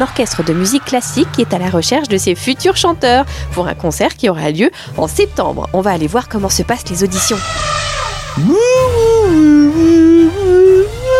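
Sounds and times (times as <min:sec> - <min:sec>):
speech: 0:00.0 - 0:07.8, 0:08.4 - 0:10.8
dog howling like an off-key singer: 0:07.2 - 0:11.1.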